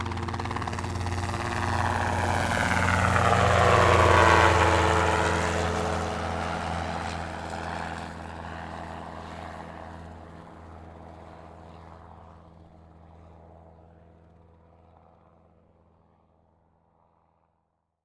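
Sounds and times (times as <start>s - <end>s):
transportation helicopter taking off: 0.0s - 11.1s.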